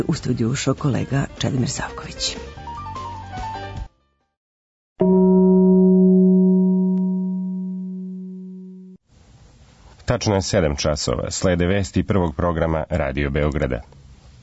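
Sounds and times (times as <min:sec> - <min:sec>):
speech: 0:00.0 - 0:02.6, 0:10.1 - 0:14.0
radio station time-signal gong: 0:05.0 - 0:09.0.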